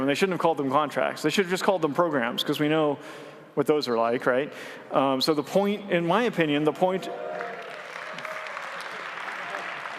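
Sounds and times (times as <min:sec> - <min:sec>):
speech: 0:00.0 - 0:07.5
crowd applause: 0:07.2 - 0:09.9.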